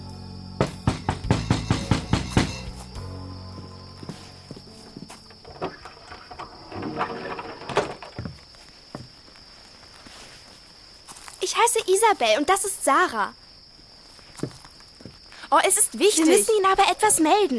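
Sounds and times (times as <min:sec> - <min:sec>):
knocking on a wooden hut door: 0:00.6 - 0:02.7
speech: 0:11.6 - 0:13.4, 0:15.5 - 0:17.5.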